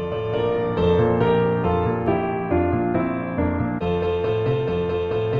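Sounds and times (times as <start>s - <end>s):
musical accompaniment: 0.2s - 5.2s.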